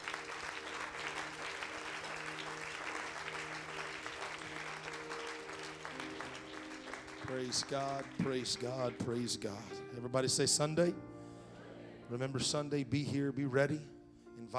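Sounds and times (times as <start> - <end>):
audience clapping hands: 0.0 - 9.4
speech: 7.3 - 11.1, 12.1 - 14.5.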